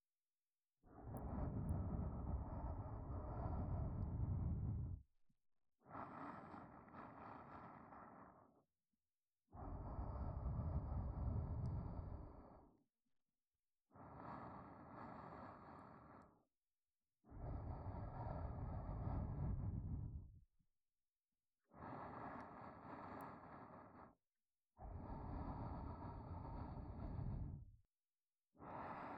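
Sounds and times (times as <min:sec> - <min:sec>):
soft breathing loop in the right ear: 0:00.9 - 0:05.0, 0:05.8 - 0:08.6, 0:09.5 - 0:12.8, 0:13.9 - 0:16.4, 0:17.3 - 0:20.4, 0:21.6 - 0:24.2, 0:24.8 - 0:27.8, 0:28.6 - 0:29.1.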